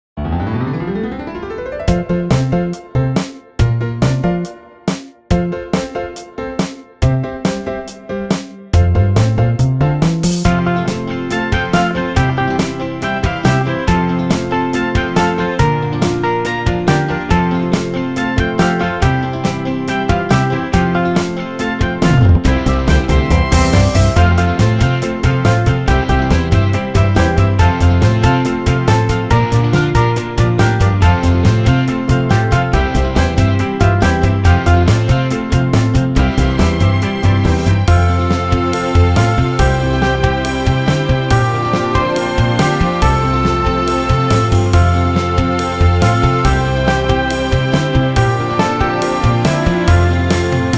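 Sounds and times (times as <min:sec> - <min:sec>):
backing music: 0:01.8 - 0:50.7.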